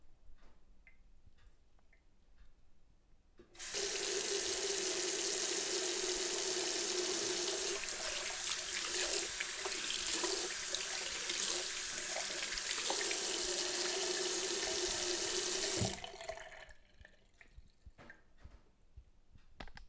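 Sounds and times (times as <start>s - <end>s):
water tap running: 3.6s - 17.3s.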